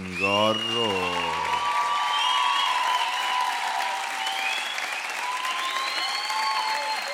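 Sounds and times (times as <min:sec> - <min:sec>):
audience applauding a band: 0:00.0 - 0:07.1
scattered whistles from audience: 0:00.0 - 0:07.1
speech: 0:00.2 - 0:01.3.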